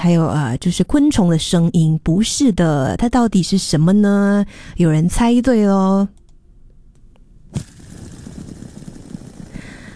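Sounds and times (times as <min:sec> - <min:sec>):
speech: 0:00.0 - 0:06.2
fidget spinner spinning: 0:07.5 - 0:09.9.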